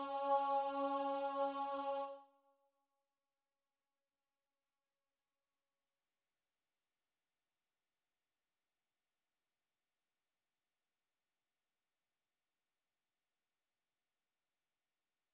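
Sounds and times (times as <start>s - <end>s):
alto chorus singing: 0.0s - 2.3s.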